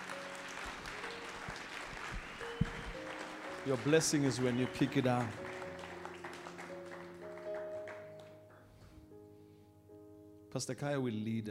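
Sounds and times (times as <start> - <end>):
audience clapping as an applause offering: 0.0 - 8.6
speech: 3.6 - 5.4, 10.5 - 11.5.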